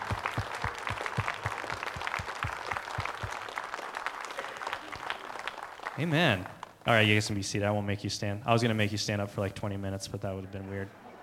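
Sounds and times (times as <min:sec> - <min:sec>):
audience clapping: 0:00.0 - 0:07.2
speech: 0:06.0 - 0:11.0.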